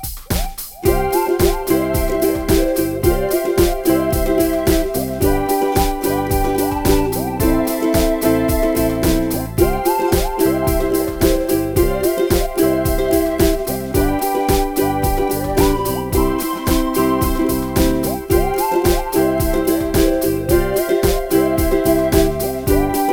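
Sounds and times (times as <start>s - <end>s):
ukulele: 0.3s - 23.0s.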